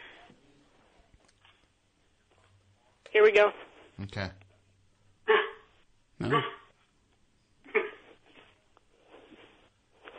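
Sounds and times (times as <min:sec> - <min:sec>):
speech: 0:03.2 - 0:04.4, 0:06.2 - 0:06.6
person imitating a Chihuahua barking: 0:06.2 - 0:06.7.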